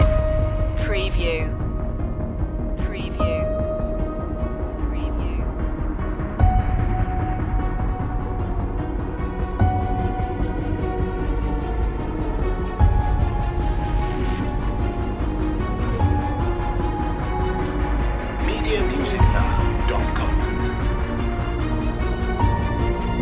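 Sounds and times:
dark power music loop: 0.0s - 23.2s.

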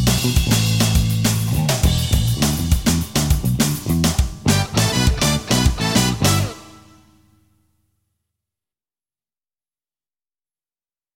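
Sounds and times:
chat show bass drums: 0.0s - 6.8s.

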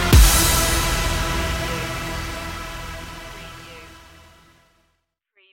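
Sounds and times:
TV punch stinger: 0.1s - 4.4s.

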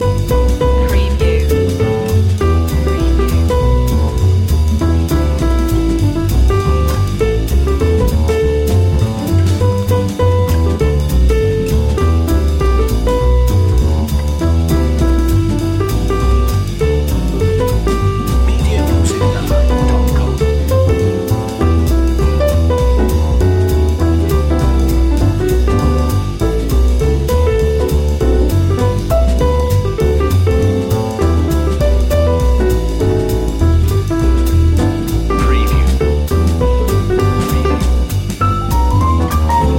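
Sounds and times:
jazz christmas tune: 0.0s - 39.7s.

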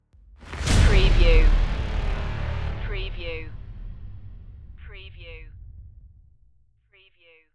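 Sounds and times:
hybrid trailer stinger: 0.2s - 6.7s.

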